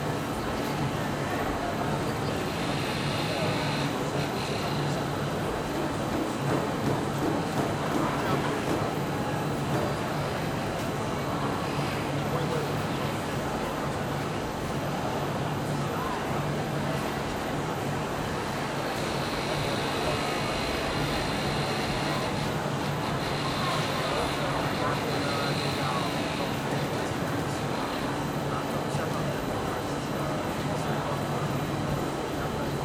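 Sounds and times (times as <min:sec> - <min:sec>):
large crowd walla in a busy food court in Singapore: 0:00.0 - 0:32.8.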